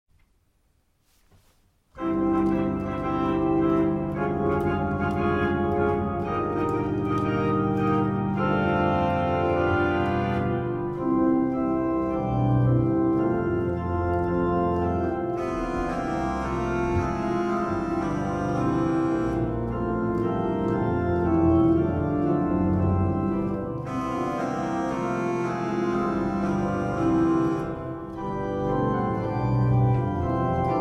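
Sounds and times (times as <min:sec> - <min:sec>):
hymn prelude: 0:01.9 - 0:30.7.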